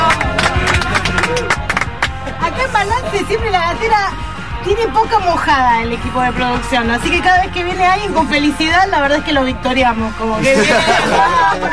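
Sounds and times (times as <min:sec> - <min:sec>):
small audience clapping: 0:00.0 - 0:02.4
speech: 0:03.1 - 0:11.7
laughter: 0:10.4 - 0:11.7.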